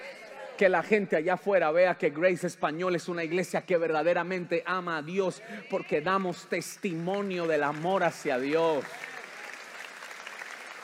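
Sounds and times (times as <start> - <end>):
speech: 0.6 - 9.1
audience applause: 5.5 - 10.8.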